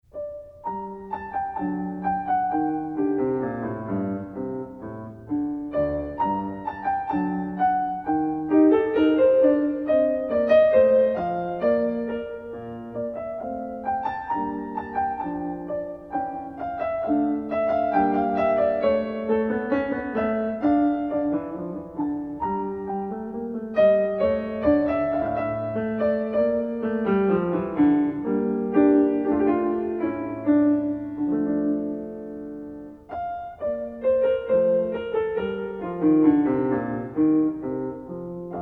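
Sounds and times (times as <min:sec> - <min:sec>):
air in G minor: 0:00.0 - 0:38.5.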